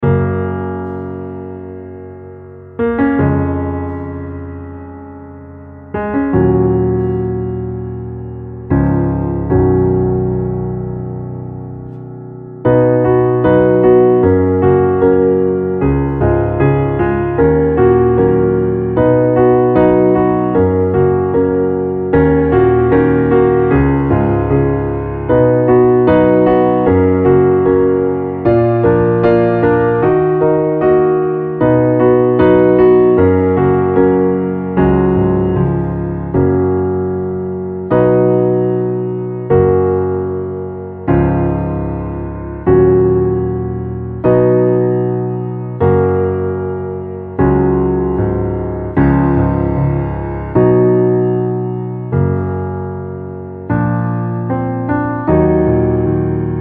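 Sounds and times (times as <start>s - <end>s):
piano underscore: 0.0s - 56.5s.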